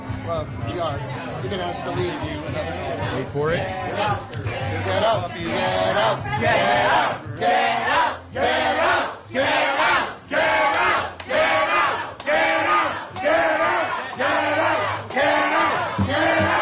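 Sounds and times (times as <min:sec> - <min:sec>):
speech: 0:00.3 - 0:09.5
restaurant crowd yelling at health inspectors: 0:07.8 - 0:16.6.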